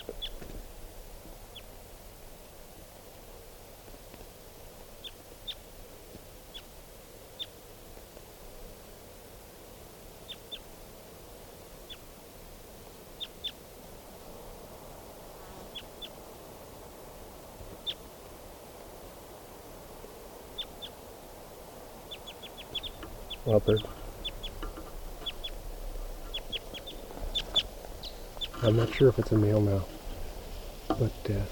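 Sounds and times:
wild bird calling with high chirps: 0.0 - 0.4, 22.1 - 31.4
speech: 23.5 - 24.0, 28.6 - 30.0, 31.0 - 31.5.

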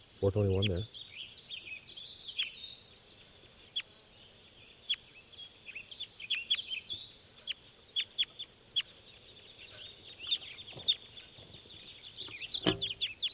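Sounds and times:
wild birds' high chatter of calls: 0.0 - 13.3
speech: 0.2 - 1.0.

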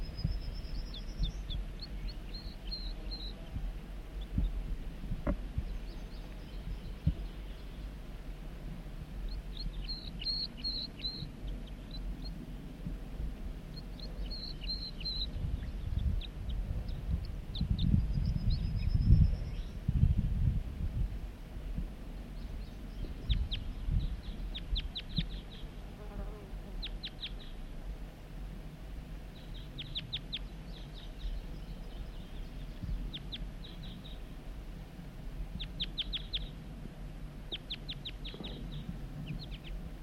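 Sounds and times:
wild male bird singing: 0.0 - 4.6, 5.6 - 8.0, 9.2 - 12.4, 13.7 - 20.3, 22.2 - 25.8, 26.8 - 27.6, 29.3 - 34.3, 35.6 - 36.6, 37.5 - 39.8
low buzzing hum: 0.0 - 40.0.

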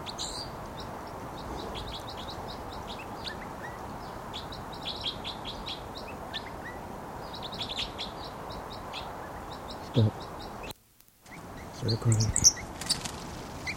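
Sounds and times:
wild bird flight song: 0.0 - 13.7
speech: 11.9 - 12.5.

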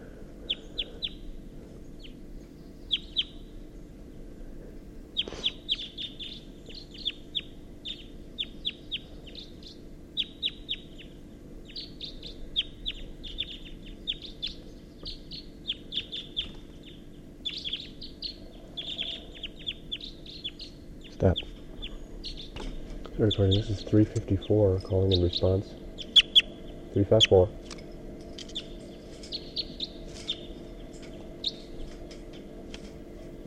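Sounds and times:
low steady hum: 0.0 - 33.4
wild birds calling from oak tree: 0.0 - 33.4
speech: 23.2 - 25.8, 27.0 - 27.6.

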